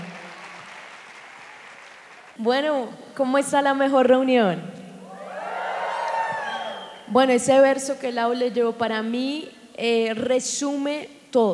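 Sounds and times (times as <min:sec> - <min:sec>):
audience applause: 0:00.0 - 0:02.4, 0:05.2 - 0:07.0
speech: 0:02.4 - 0:04.7, 0:07.1 - 0:11.5.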